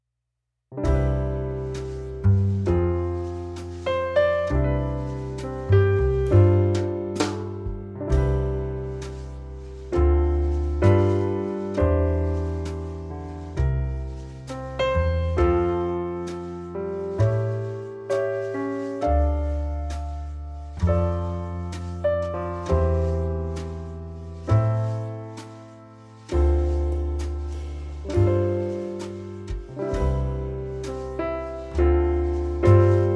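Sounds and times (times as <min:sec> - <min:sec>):
jazz horn in F: 0:00.8 - 0:33.1.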